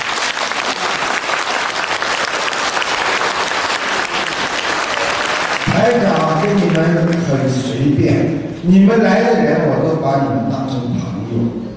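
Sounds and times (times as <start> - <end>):
audience applause: 0.0 - 7.8
speech: 5.8 - 11.6.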